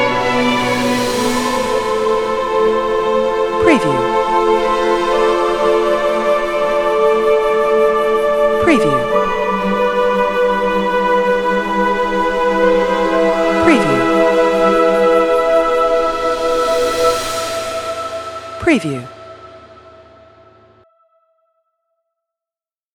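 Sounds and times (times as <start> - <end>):
dark suspense horror soundtrack: 0.0 - 20.8
cinematic female voice storytelling: 2.8 - 16.1.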